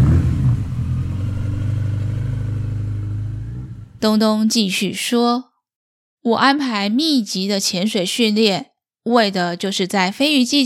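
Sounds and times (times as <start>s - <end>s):
motorcycle engine starting and idling with mechanical clatter: 0.0s - 4.0s
speech: 4.0s - 5.5s, 6.2s - 10.6s.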